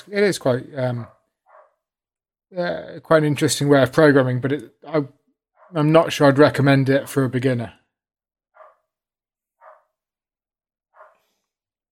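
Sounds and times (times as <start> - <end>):
speech: 0.0 - 1.2, 2.5 - 7.8
dog barking: 1.0 - 1.8, 5.6 - 5.8, 8.6 - 8.9, 9.6 - 10.0, 11.0 - 11.2.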